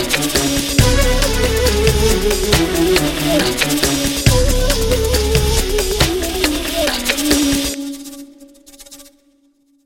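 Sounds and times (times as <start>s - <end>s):
romantic beats: 0.0s - 7.8s.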